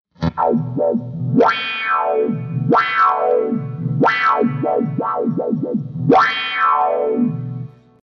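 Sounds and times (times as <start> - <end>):
wah effect: 0.1 - 8.0.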